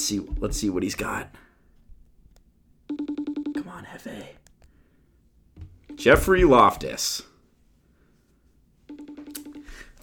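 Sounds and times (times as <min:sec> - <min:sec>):
speech: 0:00.0 - 0:01.5, 0:06.0 - 0:07.3
phone call ringing tone: 0:02.9 - 0:03.7, 0:05.8 - 0:06.8, 0:08.9 - 0:10.0.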